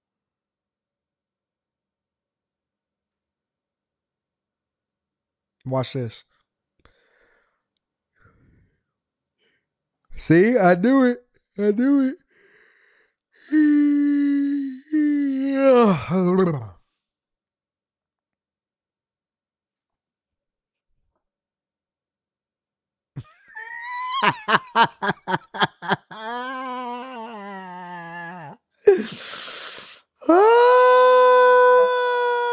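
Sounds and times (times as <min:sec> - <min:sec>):
speech: 0:05.6 - 0:06.3, 0:10.2 - 0:12.2, 0:13.4 - 0:14.2, 0:15.6 - 0:16.7, 0:24.2 - 0:26.5
person yawning: 0:13.4 - 0:16.8, 0:23.4 - 0:25.1, 0:25.8 - 0:32.5
laughter: 0:23.2 - 0:26.4.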